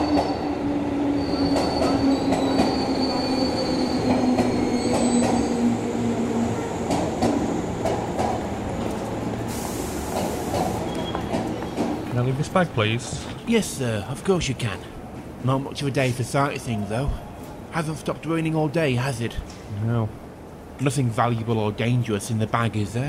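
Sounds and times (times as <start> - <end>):
train arriving at a station: 0.0 - 23.0
speech: 12.4 - 20.2, 20.8 - 23.0.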